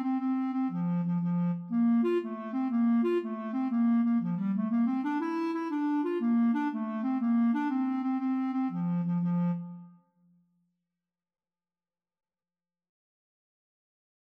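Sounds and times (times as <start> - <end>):
clarinet playing an Irish jig medley: 0.0 - 10.0.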